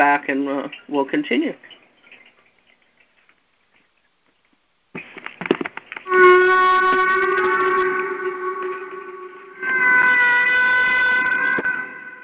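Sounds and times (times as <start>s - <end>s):
speech: 0.0s - 1.8s
whale moaning calls: 6.1s - 12.2s.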